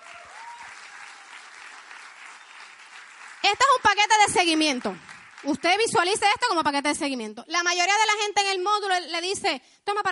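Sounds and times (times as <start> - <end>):
audience applause: 0.0 - 5.9
speech: 3.5 - 10.0.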